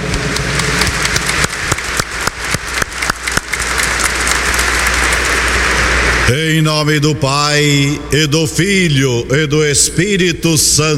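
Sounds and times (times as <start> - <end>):
crowd applauding warmly: 0.2 - 6.2
speech: 6.3 - 10.9.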